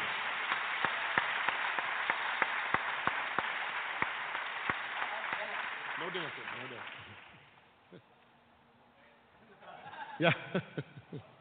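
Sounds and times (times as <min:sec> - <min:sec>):
sparse clapping from a small audience: 0:00.0 - 0:07.7
speech: 0:06.1 - 0:07.1, 0:10.2 - 0:11.3
laughter: 0:09.4 - 0:11.3.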